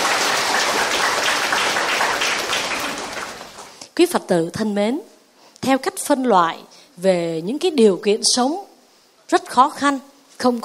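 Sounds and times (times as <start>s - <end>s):
crowd applause: 0.0s - 3.8s
speech: 4.0s - 8.7s, 9.3s - 10.6s.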